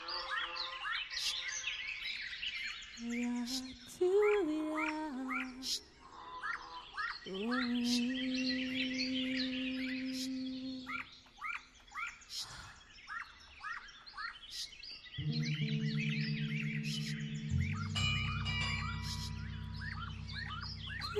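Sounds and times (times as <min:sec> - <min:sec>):
birds: 0:00.0 - 0:21.1
bells: 0:15.2 - 0:21.1.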